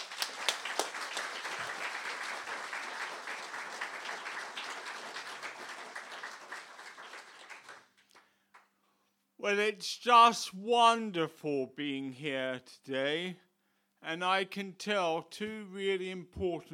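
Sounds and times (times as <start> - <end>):
church audience applause welcoming a speaker: 0.0 - 8.2
speech: 9.4 - 13.4, 14.0 - 16.7.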